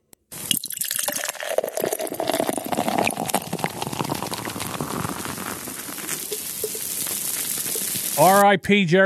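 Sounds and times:
hard seltzer being poured onto the floor: 0:00.3 - 0:08.4
speech: 0:08.2 - 0:09.0.

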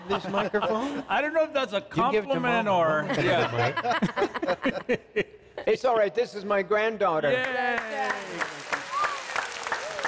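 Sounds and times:
laughter: 0:00.0 - 0:01.1, 0:02.9 - 0:05.4
speech: 0:00.1 - 0:08.5
small group clapping: 0:07.3 - 0:10.0.

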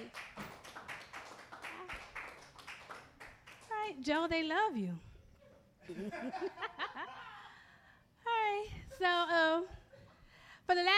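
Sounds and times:
comedy show audience applauding its host: 0:00.0 - 0:03.7
speech: 0:04.0 - 0:05.1, 0:05.9 - 0:06.7, 0:09.0 - 0:09.8, 0:10.7 - 0:10.9.

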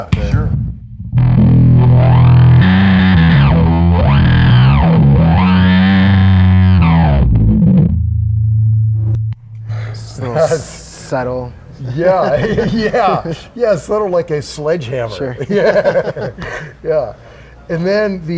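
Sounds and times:
speech: 0:00.0 - 0:00.4, 0:10.4 - 0:18.3
bass guitar played through a mini bass wah pedal: 0:00.0 - 0:10.3
laughter: 0:11.8 - 0:13.5, 0:15.1 - 0:16.8.

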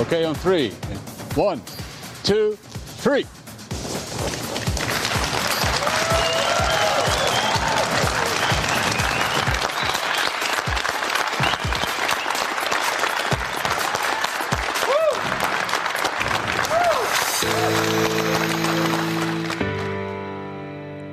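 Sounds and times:
speech: 0:00.1 - 0:03.4
crowd applause and cheers at a truck launch event: 0:04.6 - 0:20.1
sustained musical chord: 0:17.5 - 0:21.0.

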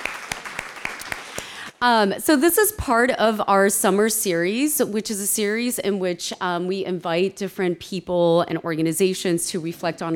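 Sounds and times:
audience applause: 0:00.0 - 0:01.7
speech: 0:01.8 - 0:10.1.

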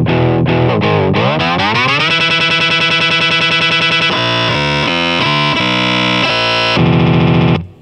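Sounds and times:
distorted electric guitar through an expression pedal and looping delay: 0:00.0 - 0:07.7.

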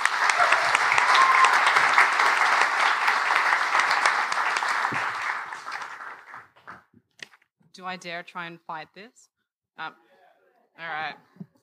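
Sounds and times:
crowd cheering: 0:00.0 - 0:06.8
audience applause: 0:00.0 - 0:06.9
speech: 0:07.9 - 0:10.1, 0:10.8 - 0:11.4.

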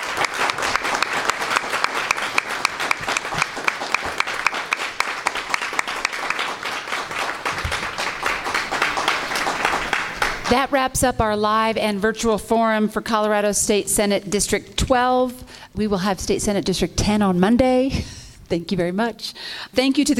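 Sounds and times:
audience applause: 0:00.0 - 0:10.6
speech: 0:10.5 - 0:20.1.

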